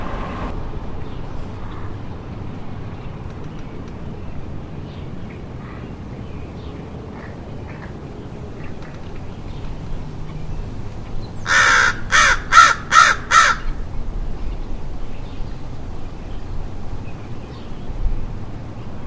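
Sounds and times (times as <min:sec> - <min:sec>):
American crow Corvus brachyrhynchos cawing: 0:11.4 - 0:13.8.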